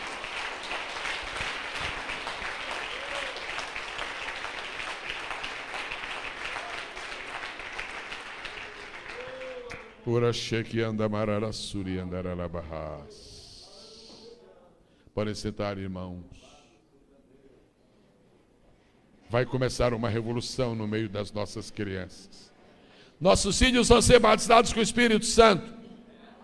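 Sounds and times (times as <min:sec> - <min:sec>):
audience applause: 0:00.0 - 0:10.0
speech: 0:10.1 - 0:13.3, 0:15.2 - 0:16.4, 0:19.3 - 0:22.5, 0:23.2 - 0:25.8.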